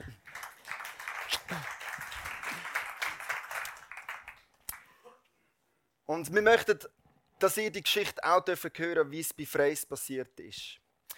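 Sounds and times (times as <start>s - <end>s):
audience applause: 0.0s - 4.8s
speech: 6.1s - 10.8s.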